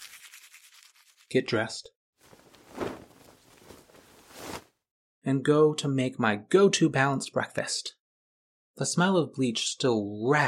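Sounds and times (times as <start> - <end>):
toothbrush scrubbing teeth: 0.0 - 1.4
speech: 1.3 - 2.0, 5.2 - 8.0, 8.8 - 10.4.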